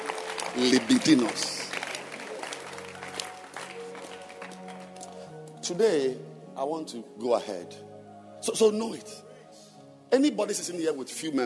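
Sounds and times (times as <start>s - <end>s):
audience clapping at a religious sermon: 0.0s - 5.3s
speech: 0.6s - 1.6s, 5.7s - 9.2s, 10.1s - 11.4s.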